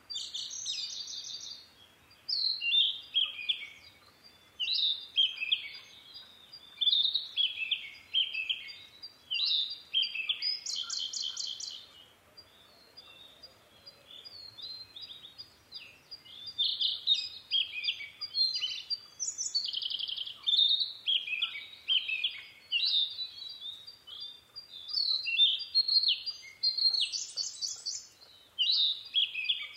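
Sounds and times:
Narcissus flycatcher singing: 0.1 - 29.7.

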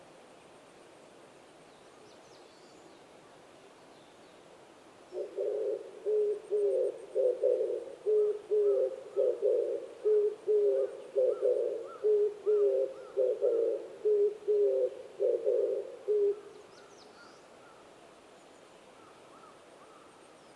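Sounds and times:
oriental turtle dove cooing: 5.1 - 16.6.

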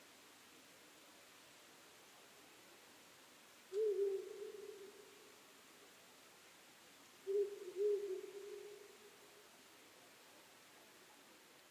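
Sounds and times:
faint hiss: 0.0 - 11.7
owl hooting: 3.8 - 5.0, 7.3 - 8.9.

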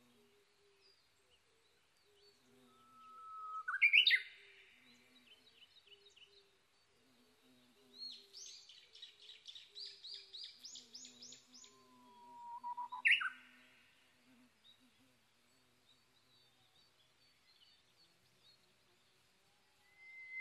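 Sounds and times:
Japanese bush warbler whistle phrase: 2.8 - 4.3, 12.1 - 13.3, 19.9 - 20.3.

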